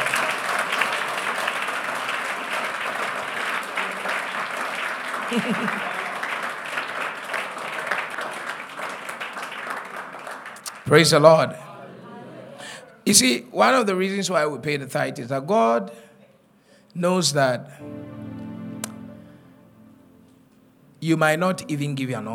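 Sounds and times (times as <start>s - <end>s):
audience clapping hands: 0.0s - 11.4s
laughter: 5.1s - 6.2s, 11.7s - 12.9s
speech: 5.3s - 5.9s, 10.9s - 11.7s, 13.1s - 16.0s, 17.0s - 18.0s, 21.0s - 22.3s.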